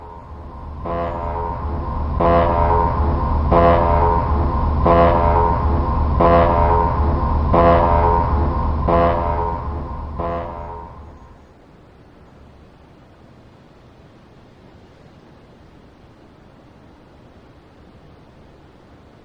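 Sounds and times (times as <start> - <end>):
alarms: 0.0 - 11.4
sirens: 0.0 - 11.4.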